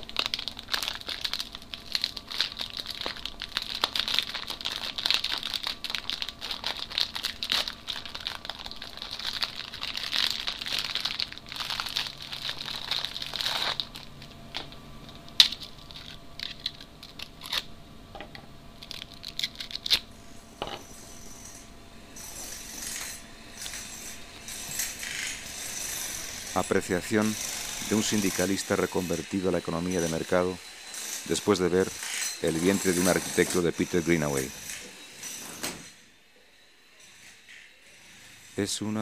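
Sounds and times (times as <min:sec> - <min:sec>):
fortune cookie plastic wrapper crinkling and rustling: 0:00.0 - 0:17.7, 0:18.3 - 0:20.2
fortune cookies cracked open: 0:00.0 - 0:17.8, 0:18.8 - 0:20.2
speech: 0:26.6 - 0:30.7, 0:31.3 - 0:34.6, 0:38.6 - 0:39.0.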